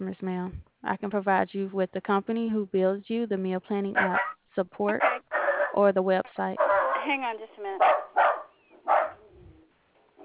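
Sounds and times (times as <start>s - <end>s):
speech: 0.0s - 8.3s
zealous puppy dog barking: 4.0s - 5.8s, 6.6s - 7.1s, 7.8s - 9.3s.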